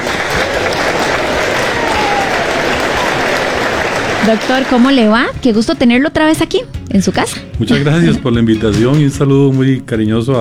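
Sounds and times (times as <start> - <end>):
audience applause: 0.0 - 5.6
laughter: 0.0 - 10.3
speech: 4.2 - 10.3.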